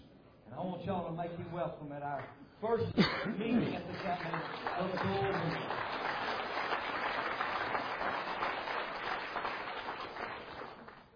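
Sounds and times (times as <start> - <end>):
speech: 0.6 - 5.9
audience applause: 3.8 - 11.1.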